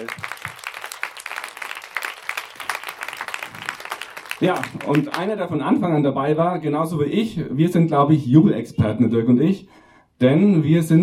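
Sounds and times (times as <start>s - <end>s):
audience applause: 0.0s - 5.3s
speech: 4.4s - 11.0s.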